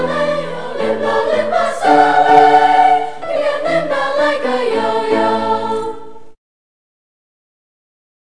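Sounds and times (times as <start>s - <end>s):
Guyanese folk song: 0.0s - 6.4s.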